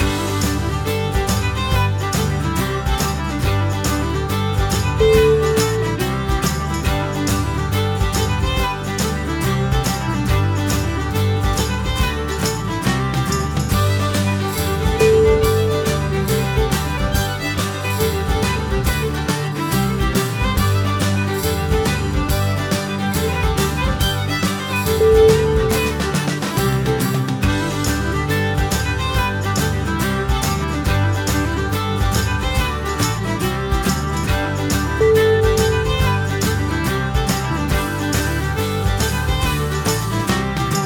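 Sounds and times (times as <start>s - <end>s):
bouncy Celtic music: 0.0s - 40.8s.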